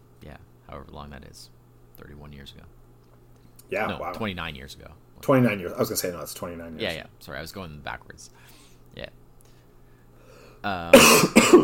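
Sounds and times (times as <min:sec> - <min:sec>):
speech: 0:00.3 - 0:02.8, 0:03.7 - 0:09.2, 0:10.6 - 0:11.6
coughing from choking on saliva: 0:10.9 - 0:11.6.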